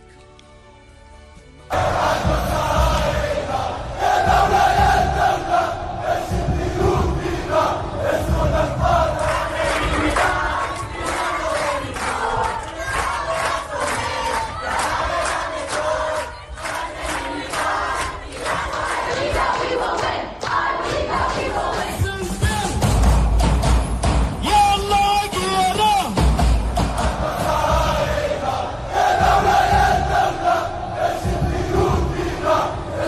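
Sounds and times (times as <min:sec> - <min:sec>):
protest crowd shouting and chanting: 0:01.7 - 0:33.0.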